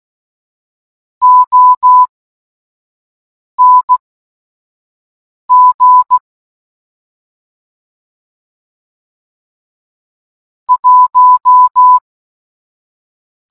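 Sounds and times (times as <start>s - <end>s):
morse code beeps: 1.2s - 2.1s, 3.6s - 4.0s, 5.5s - 6.2s, 10.7s - 12.0s.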